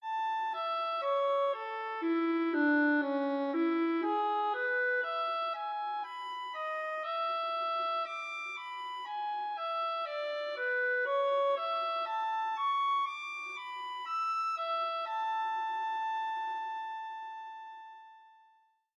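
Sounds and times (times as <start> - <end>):
draft of a presto music piece: 0.1 - 16.2.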